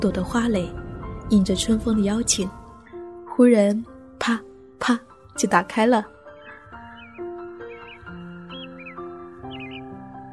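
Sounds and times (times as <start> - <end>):
speech: 0.0 - 2.6, 3.4 - 6.1
magpies calling: 6.2 - 10.3.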